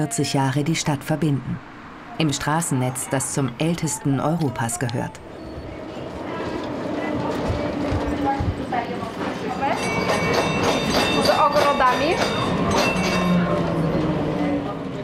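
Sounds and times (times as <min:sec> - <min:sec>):
speech: 0:00.0 - 0:05.5
indistinct voices murmuring: 0:00.0 - 0:15.0
tram running on rails: 0:00.0 - 0:15.0.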